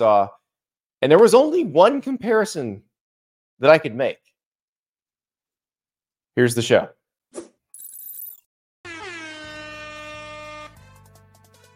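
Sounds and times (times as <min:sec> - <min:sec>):
speech: 0:00.0 - 0:00.4, 0:01.0 - 0:02.9, 0:03.6 - 0:04.3, 0:06.4 - 0:07.5
emergency sirens sound effect: 0:08.9 - 0:10.8.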